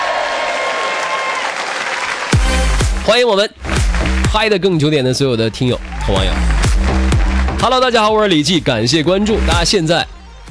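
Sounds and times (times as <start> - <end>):
audience applause at a live broadcast event: 0.0 - 3.0, 5.5 - 8.0
speech: 3.1 - 6.5, 7.6 - 10.2.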